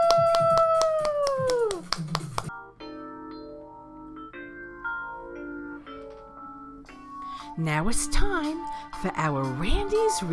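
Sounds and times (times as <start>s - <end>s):
group clapping hands: 0.0s - 2.6s
soft sustained musical tones: 2.6s - 10.3s
speech: 7.6s - 10.3s.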